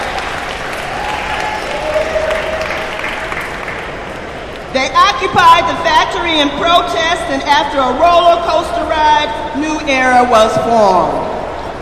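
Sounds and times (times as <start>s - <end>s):
audience applause: 0.0s - 4.7s
speech: 5.3s - 11.2s.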